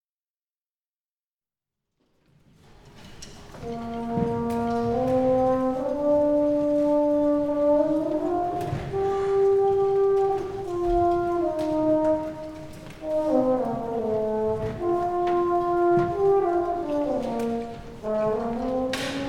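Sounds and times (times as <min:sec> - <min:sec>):
horn: 0:02.9 - 0:19.2.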